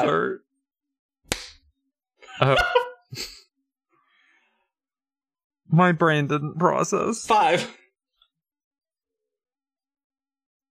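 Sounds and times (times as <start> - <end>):
speech: 0.0 - 0.5, 2.4 - 3.4, 5.7 - 7.8
hand clap: 1.3 - 1.6
laughter: 2.2 - 3.4.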